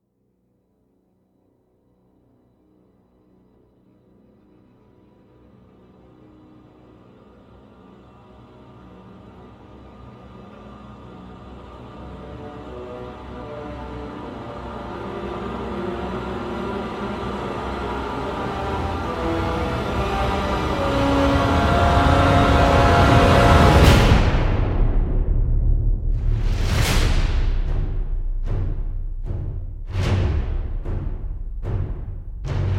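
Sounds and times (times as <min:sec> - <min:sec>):
orchestral music: 0:06.6 - 0:32.7.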